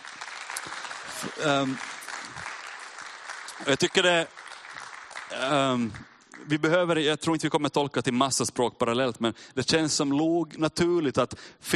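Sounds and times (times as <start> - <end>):
audience applause: 0.0 - 6.9
speech: 1.2 - 1.9, 3.6 - 4.4, 5.3 - 11.7.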